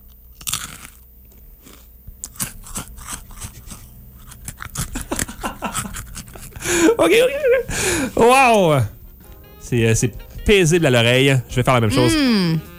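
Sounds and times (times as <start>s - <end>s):
chewing a crunchy pizza pretzel: 0.1s - 6.6s
speech: 6.7s - 8.9s, 9.7s - 12.7s.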